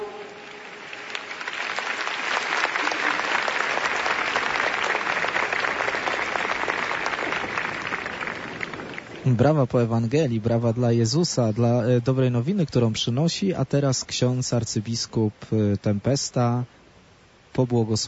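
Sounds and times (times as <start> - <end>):
audience applause: 0.2 - 9.4
speech: 9.3 - 16.8, 17.6 - 18.0.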